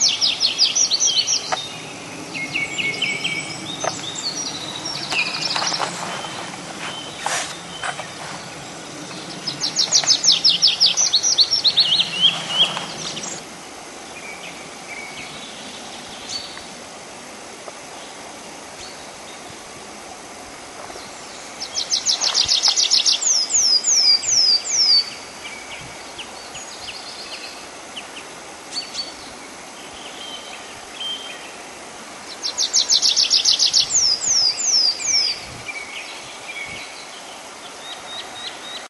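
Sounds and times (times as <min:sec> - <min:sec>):
tree pipit singing: 0:00.0 - 0:13.5, 0:20.9 - 0:38.8.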